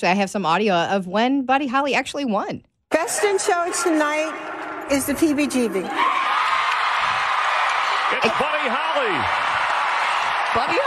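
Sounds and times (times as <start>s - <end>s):
speech: 0.0s - 6.4s, 8.1s - 9.5s, 10.5s - 10.8s
crowd cheering at a dog show win: 2.9s - 10.8s
whoops and yells: 5.8s - 10.8s.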